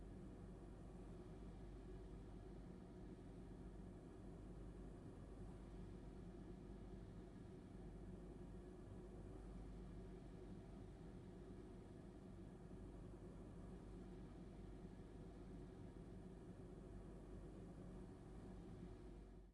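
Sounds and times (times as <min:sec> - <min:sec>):
room air conditioning hum and hiss: 0:00.0 - 0:19.4.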